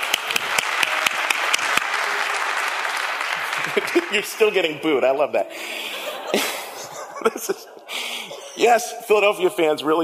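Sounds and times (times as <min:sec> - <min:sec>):
audience applause: 0:00.0 - 0:04.8
laughter: 0:03.3 - 0:04.6, 0:05.5 - 0:09.0
speech: 0:03.8 - 0:06.6, 0:07.2 - 0:07.8, 0:08.6 - 0:10.0.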